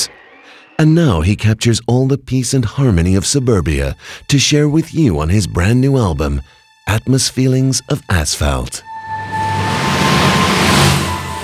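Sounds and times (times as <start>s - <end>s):
speech: 0.8s - 8.9s
vehicle rushing past on a suburban road: 8.8s - 11.4s.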